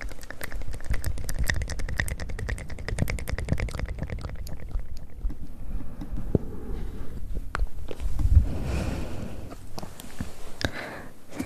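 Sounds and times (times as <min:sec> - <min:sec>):
close mouth wet clicks, smacks, lip and tongue noises: 0:00.0 - 0:06.5, 0:09.7 - 0:11.4
breathy swishes: 0:05.5 - 0:11.4.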